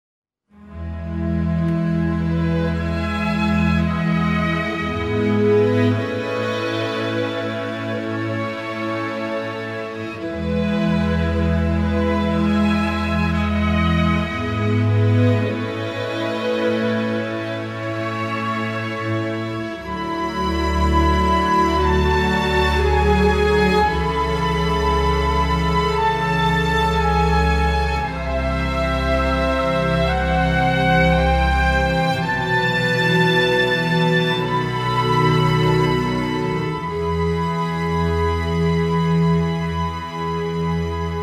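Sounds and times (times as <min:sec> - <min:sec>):
orchestra: 0:00.5 - 0:41.2.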